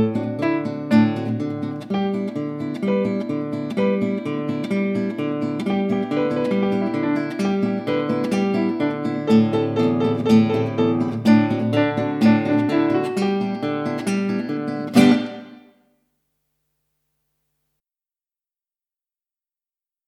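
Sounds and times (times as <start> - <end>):
instrumental guide track: 0.0 - 15.8.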